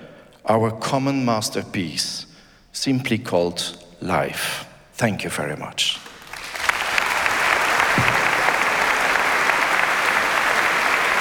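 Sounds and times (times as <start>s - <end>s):
speech: 0.4s - 6.0s
concert audience applause after a concerto performance: 6.0s - 11.1s.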